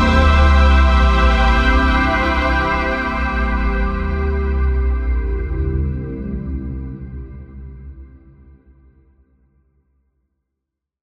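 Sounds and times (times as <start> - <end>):
ambient music: 0.0 - 8.4.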